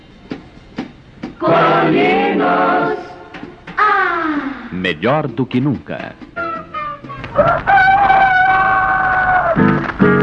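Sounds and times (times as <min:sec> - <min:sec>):
speech: 0:01.4 - 0:03.1, 0:04.8 - 0:06.4
rooster crowing: 0:06.4 - 0:09.8.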